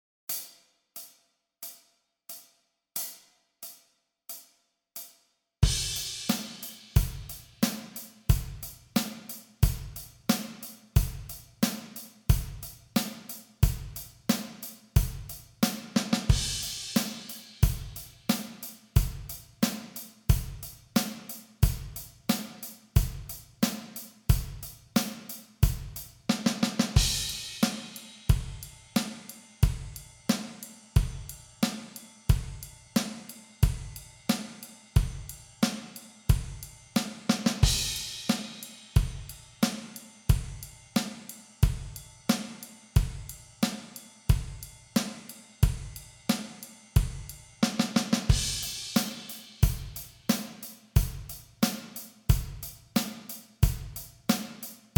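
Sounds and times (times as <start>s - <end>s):
music practice track at 90 bpm: 5.0s - 54.9s.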